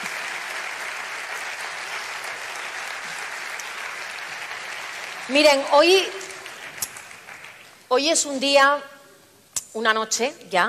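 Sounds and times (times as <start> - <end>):
audience applause: 0.0 - 7.8
speech: 5.3 - 6.2, 7.9 - 8.9, 9.8 - 10.6.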